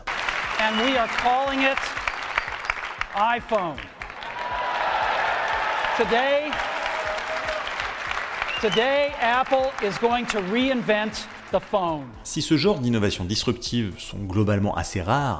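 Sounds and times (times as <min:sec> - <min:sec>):
crowd applause at product launch: 0:00.0 - 0:12.2
speech: 0:00.6 - 0:02.0, 0:03.1 - 0:04.0, 0:06.0 - 0:06.7, 0:08.6 - 0:15.3.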